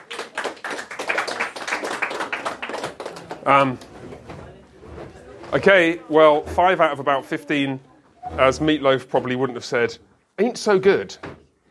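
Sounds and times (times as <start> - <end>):
audience applause: 0.0 - 3.8
speech: 3.4 - 3.9, 5.5 - 11.3.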